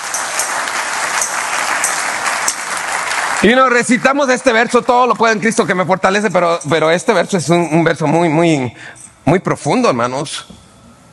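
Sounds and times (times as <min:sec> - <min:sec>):
audience applauding: 0:00.0 - 0:05.4
speech: 0:03.4 - 0:10.6.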